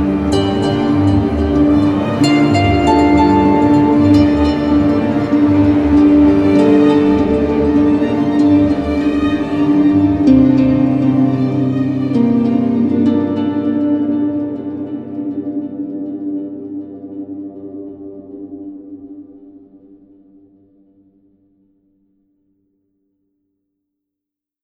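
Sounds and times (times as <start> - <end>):
harp: 0.0 - 19.7.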